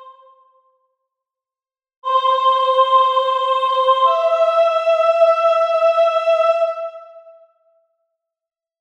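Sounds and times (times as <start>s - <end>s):
soprano singing a solemn mass: 2.0s - 7.3s.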